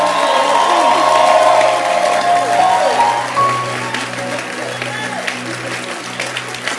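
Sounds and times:
audience clapping hands: 0:00.0 - 0:06.7.

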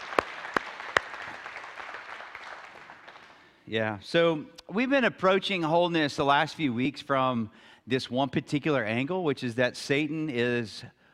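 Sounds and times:
scattered hand claps greeting two people: 0:00.0 - 0:03.5
speech: 0:03.7 - 0:11.0.

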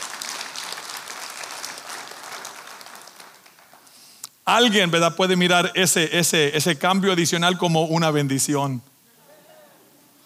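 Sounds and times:
audience applause: 0:00.0 - 0:04.1
speech: 0:04.5 - 0:08.9.

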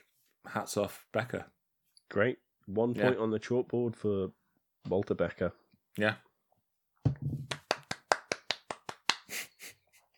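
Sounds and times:
speech: 0:00.4 - 0:06.3
one person clapping hands: 0:07.2 - 0:09.5.

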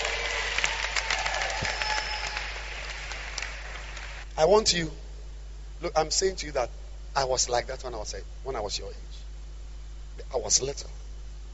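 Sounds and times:
audience clapping: 0:00.0 - 0:04.3
speech: 0:04.4 - 0:05.0, 0:05.8 - 0:09.1, 0:10.3 - 0:11.0.

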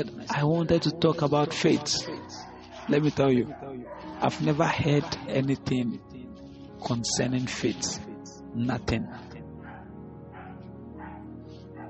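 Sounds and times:
speech: 0:00.0 - 0:06.1, 0:06.8 - 0:09.3
dog barking: 0:01.7 - 0:05.6, 0:09.6 - 0:11.8.

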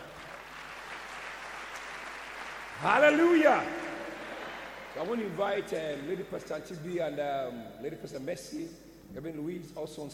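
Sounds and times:
audience clapping hands: 0:00.0 - 0:06.3
speech: 0:02.8 - 0:03.8, 0:05.0 - 0:10.1.

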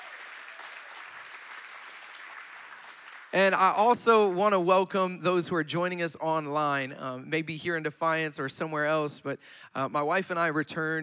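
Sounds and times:
church congregation applauding to welcome online viewers: 0:00.0 - 0:04.0
speech: 0:03.3 - 0:11.0.

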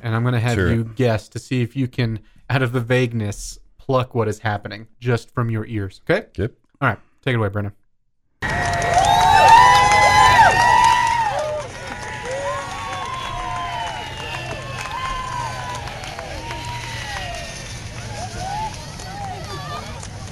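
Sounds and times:
speech: 0:00.0 - 0:07.8
crowd of fans cheering and shouting at a fence: 0:08.4 - 0:20.3
scattered whoops and calls: 0:08.5 - 0:19.9.

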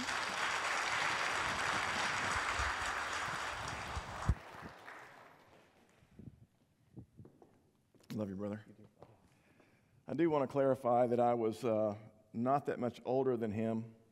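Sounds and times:
audience applause: 0:00.0 - 0:05.8
speech: 0:08.2 - 0:08.9, 0:10.1 - 0:14.0.

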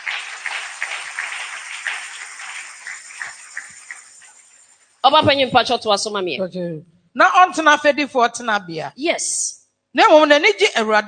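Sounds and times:
audience clapping: 0:00.0 - 0:04.8
speech: 0:05.1 - 0:11.0.

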